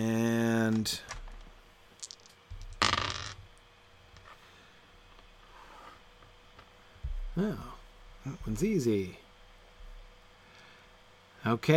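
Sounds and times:
dice being rolled: 0.8 - 3.4
speech: 0.9 - 1.1, 7.4 - 9.2, 11.4 - 11.7.

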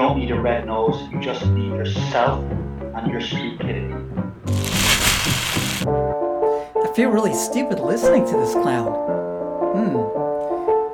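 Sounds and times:
speech: 0.2 - 6.2, 7.0 - 10.2
paper crumpling: 4.5 - 5.9.

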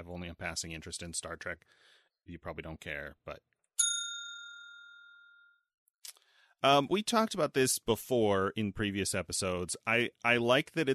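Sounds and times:
speech: 0.0 - 3.5, 6.6 - 10.9
bell struck once: 3.8 - 5.6.

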